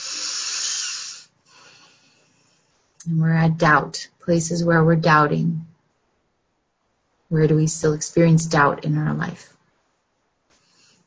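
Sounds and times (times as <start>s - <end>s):
person breathing in: 0.0s - 2.9s, 10.6s - 11.0s
speech: 3.0s - 5.7s, 7.3s - 9.5s.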